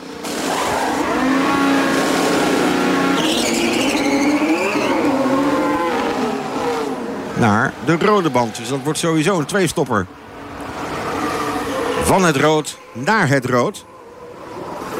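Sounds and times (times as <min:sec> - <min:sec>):
Red Bull Formula 1 car engine entering the pit lane at the 2022 Bahrain Grand Prix: 0:00.0 - 0:14.9
speech: 0:07.4 - 0:10.2, 0:12.1 - 0:13.9.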